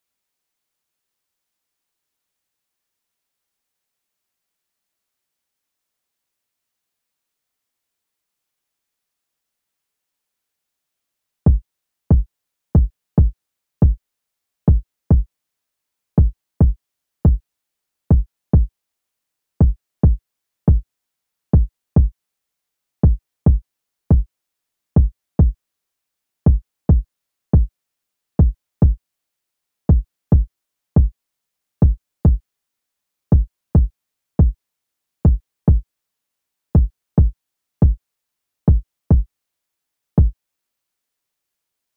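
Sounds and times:
kick drum: 0:11.5 - 0:14.0, 0:14.7 - 0:15.3, 0:16.2 - 0:17.4, 0:18.1 - 0:18.7, 0:19.6 - 0:20.8, 0:21.6 - 0:22.2, 0:23.0 - 0:24.3, 0:25.0 - 0:25.6, 0:26.5 - 0:27.7, 0:28.4 - 0:29.0, 0:29.9 - 0:31.2, 0:31.8 - 0:32.4, 0:33.4 - 0:34.6, 0:35.2 - 0:35.8, 0:36.8 - 0:38.0, 0:38.7 - 0:39.3.

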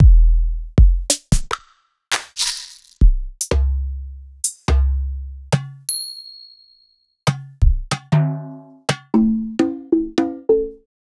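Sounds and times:
drum: 0:00.0 - 0:03.8, 0:07.3 - 0:10.5.

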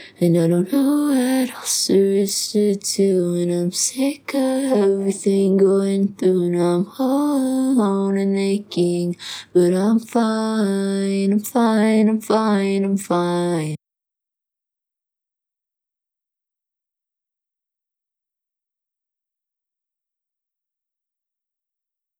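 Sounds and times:
clean vocals: 0:00.0 - 0:13.8.

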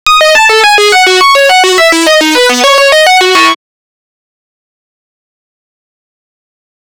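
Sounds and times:
lead synth: 0:00.1 - 0:03.5.

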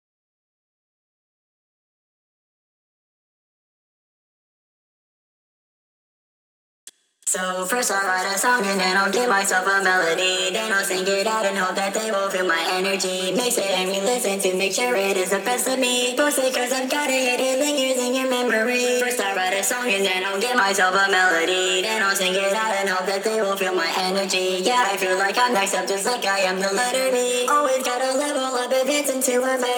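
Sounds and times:
person singing: 0:07.3 - 0:29.7.

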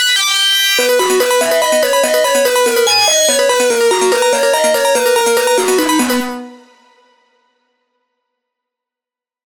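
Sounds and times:
synthesizer music: 0:00.8 - 0:07.1.

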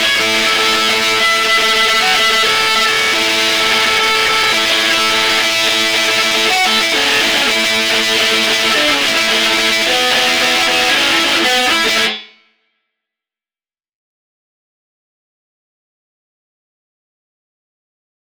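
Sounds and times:
lead guitar: 0:00.0 - 0:12.3.

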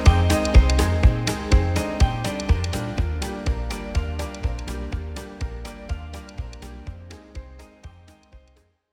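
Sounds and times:
instrumental music: 0:00.0 - 0:08.5.

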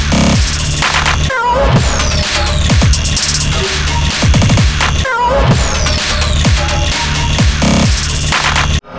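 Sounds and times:
128 bpm instrumental music: 0:00.0 - 0:08.8.

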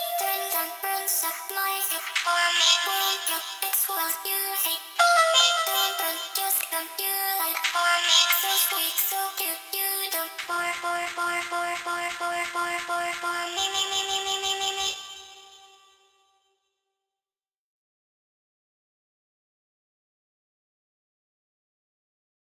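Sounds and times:
vocal harmony: 0:00.0 - 0:16.0.

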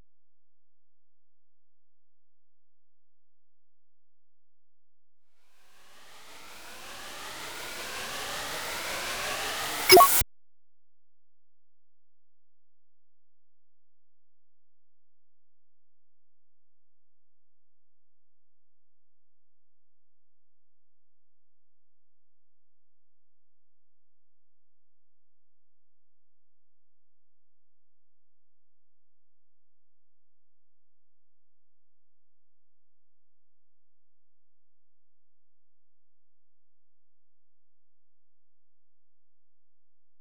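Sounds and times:
riser sweep: 0:05.7 - 0:10.2.

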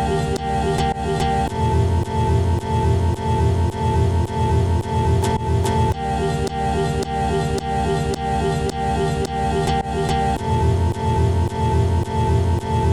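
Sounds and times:
guitar loop: 0:00.0 - 0:12.9.

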